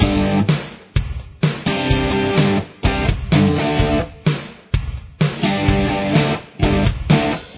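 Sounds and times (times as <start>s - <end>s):
guitar playing a verse: 0.0s - 0.5s, 1.7s - 4.1s, 5.4s - 7.5s.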